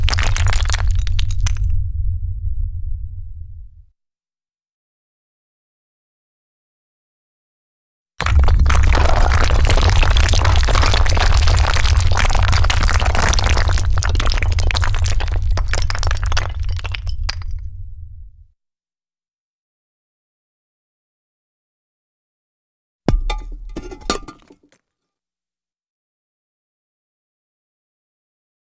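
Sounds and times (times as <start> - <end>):
stones falling: 0.0 - 1.7, 8.2 - 17.6, 23.1 - 24.8.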